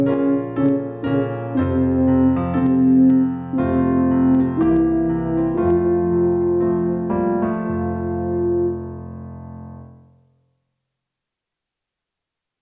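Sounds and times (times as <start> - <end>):
brass ensemble playing tutti: 0.0 - 8.9.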